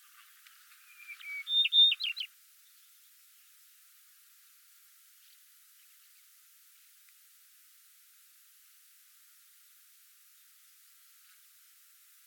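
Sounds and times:
yellow-breasted bunting calling: 0.7 - 2.3.

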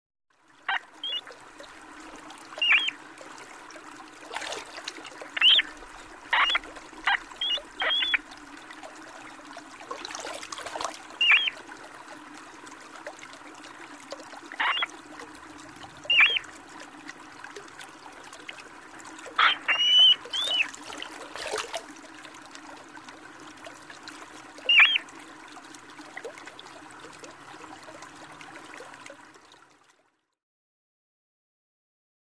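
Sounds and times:
muskrat calling: 0.7 - 1.3, 2.6 - 3.0, 5.3 - 8.2, 11.2 - 11.6, 14.6 - 14.9, 16.1 - 16.5, 19.4 - 20.8, 24.7 - 25.0.

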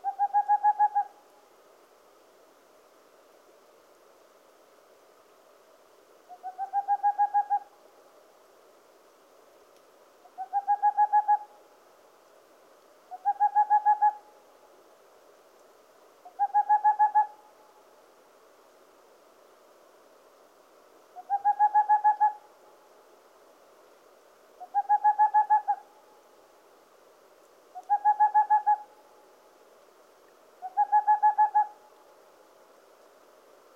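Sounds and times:
boreal owl calling: 0.0 - 1.2, 6.3 - 7.7, 10.2 - 11.6, 13.1 - 14.3, 16.2 - 17.5, 21.2 - 22.5, 24.6 - 26.0, 27.7 - 29.0, 30.6 - 31.9.

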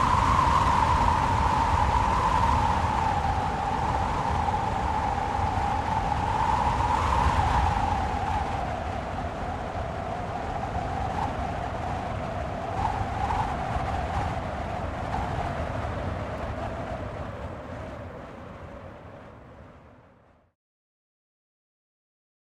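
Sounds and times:
sky sounds: 0.0 - 20.4.

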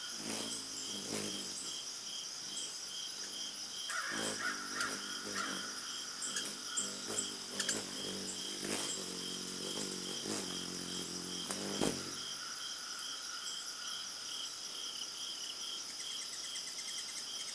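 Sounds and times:
forest sounds: 0.0 - 17.5.

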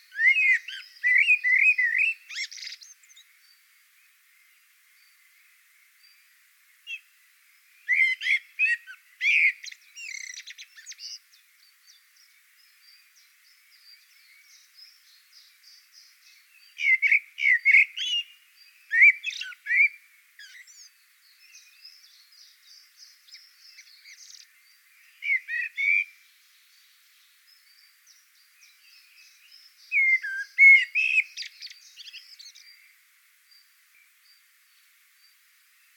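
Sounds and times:
blackbird voice: 0.0 - 3.3, 7.9 - 11.3, 13.8 - 26.2, 27.5 - 33.0.

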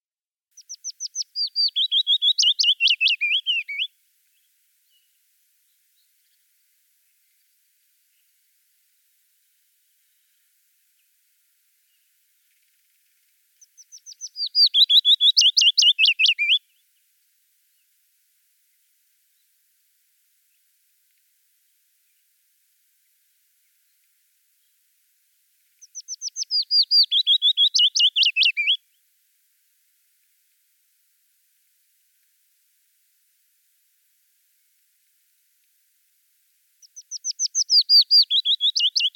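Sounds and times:
willow warbler singing: 0.6 - 3.9, 13.6 - 16.6, 25.8 - 28.8, 36.8 - 39.1.

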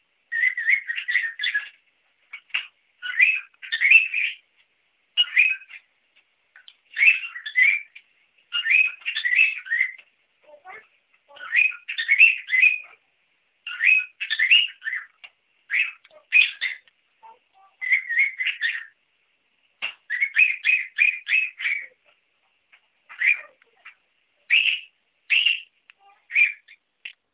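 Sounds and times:
cockatiel parrot calling: 0.3 - 4.4, 5.2 - 5.8, 7.0 - 10.0, 10.6 - 13.0, 13.6 - 19.0, 20.1 - 22.0, 23.1 - 26.8.

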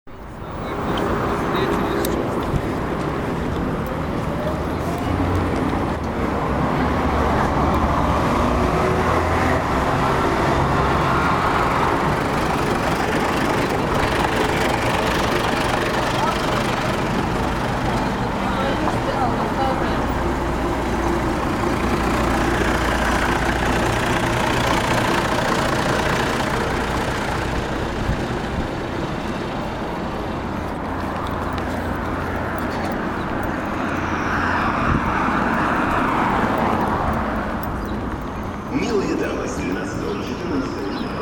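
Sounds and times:
city sounds: 0.0 - 41.1.

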